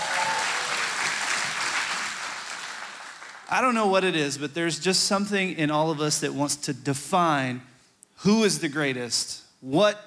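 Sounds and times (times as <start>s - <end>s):
audience cheering: 0.0s - 3.5s
speech: 3.5s - 10.0s.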